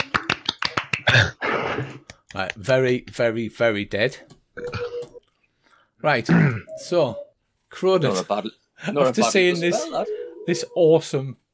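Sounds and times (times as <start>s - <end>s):
sharp hand claps: 0.0s - 1.4s, 2.0s - 3.3s
speech: 1.1s - 4.7s, 6.0s - 11.4s.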